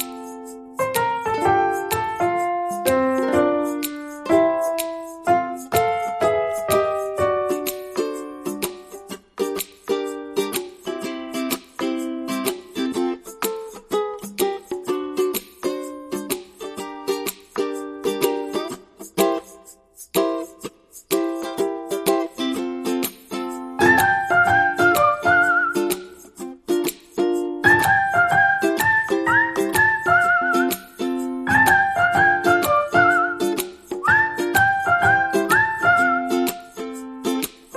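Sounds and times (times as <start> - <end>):
melody: 0.0 - 8.6, 23.8 - 25.8, 27.6 - 33.5, 34.1 - 37.1
percussion: 0.0 - 37.7
ukulele: 0.0 - 37.7.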